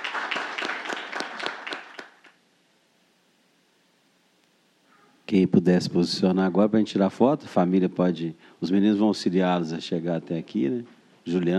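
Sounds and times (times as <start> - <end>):
audience applause: 0.0 - 2.4
speech: 5.3 - 11.5.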